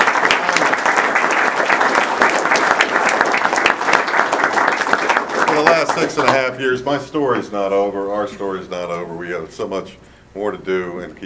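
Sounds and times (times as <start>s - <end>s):
audience applause honoring an executive committee: 0.0s - 6.5s
speech: 6.0s - 11.2s.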